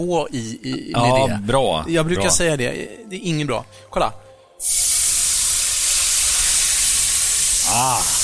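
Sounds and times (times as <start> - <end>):
speech: 0.0 - 5.0, 7.8 - 8.2
white wine sizzling as it deglazes hot pan: 4.6 - 8.2.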